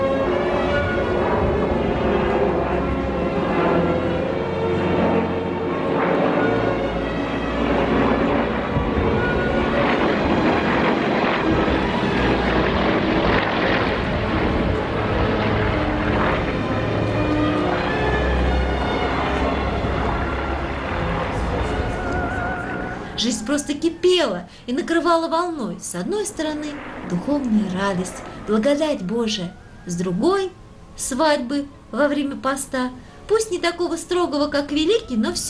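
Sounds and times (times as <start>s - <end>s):
aircraft engines roaring overhead at an air display: 0.0s - 35.4s
speech: 23.6s - 35.4s.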